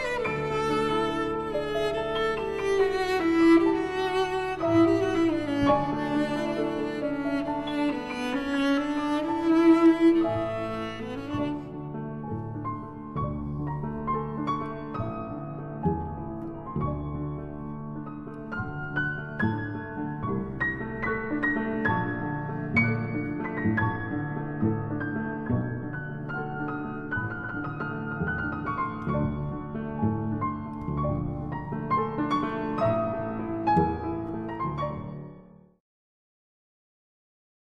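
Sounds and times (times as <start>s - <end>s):
cello and piano sonata: 0.0s - 35.8s.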